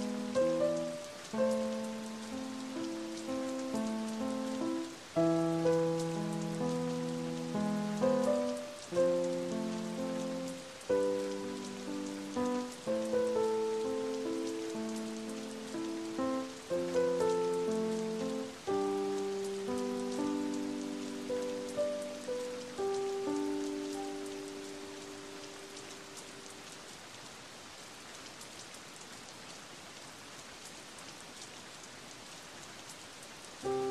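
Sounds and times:
music: 0.0 - 25.8, 33.6 - 33.9
rain: 0.0 - 33.9.

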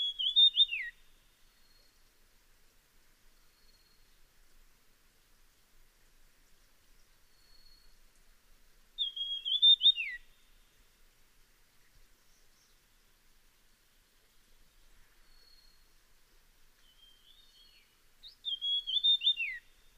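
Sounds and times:
Dusky fulvetta high whistle: 0.0 - 1.0, 9.0 - 10.3, 18.2 - 19.7.

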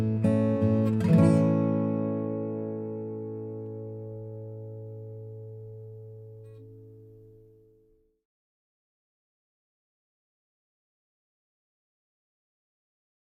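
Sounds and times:
Yamaha guitar: 0.0 - 8.1.

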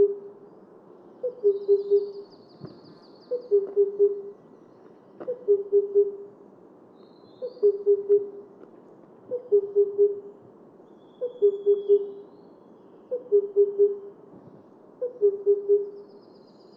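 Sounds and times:
Himalayan cuckoo hooting call: 1.2 - 2.3, 3.3 - 4.4, 5.2 - 6.3, 7.4 - 8.4, 9.3 - 10.3, 11.2 - 12.3, 13.1 - 14.2, 15.0 - 16.2.

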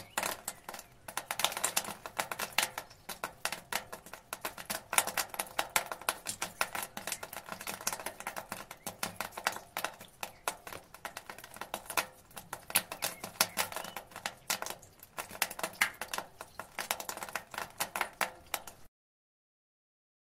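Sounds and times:
rain on gutter: 0.0 - 18.9.

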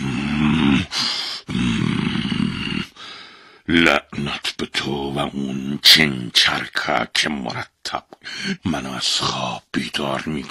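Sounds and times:
voice imitating an angry demon roaring: 0.0 - 3.0
speech: 3.7 - 10.4.

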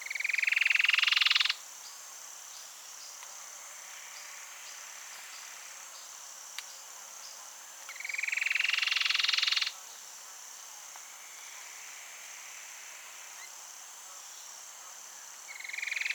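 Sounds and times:
Cherrie's antwren: 0.1 - 1.6, 7.2 - 9.8, 15.5 - 16.1.

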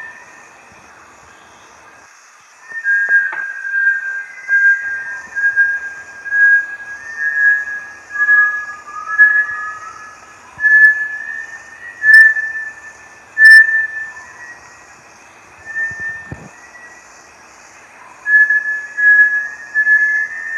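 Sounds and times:
Bartlett's tinamou whistles: 2.6 - 14.9, 15.6 - 17.1, 18.2 - 20.5.

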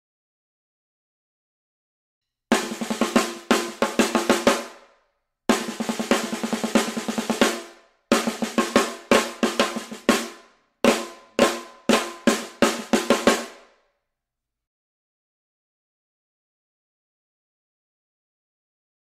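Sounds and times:
snare drum: 2.5 - 4.8, 5.5 - 13.7.

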